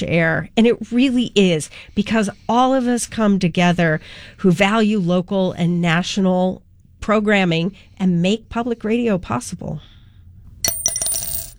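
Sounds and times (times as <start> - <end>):
speech: 0.0 - 9.9
single quarter dropping into a jar: 10.6 - 11.5.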